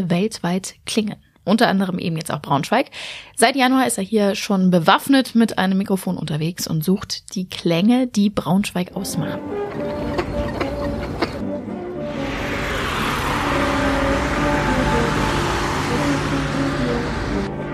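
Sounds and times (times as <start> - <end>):
speech: 0.0 - 10.3
steady city street traffic noise: 9.4 - 17.5
car surging past: 9.5 - 17.6.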